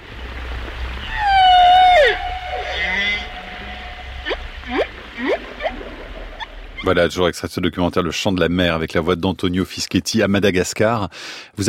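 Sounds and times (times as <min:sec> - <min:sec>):
whale song from a Guadeloupe whale: 0:00.0 - 0:06.9
low steady rumble: 0:00.0 - 0:07.7
speech: 0:06.9 - 0:11.6.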